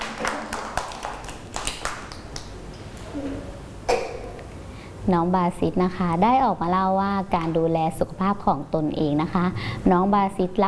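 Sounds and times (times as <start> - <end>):
children clapping: 0.0 - 2.6
speech: 5.1 - 10.6.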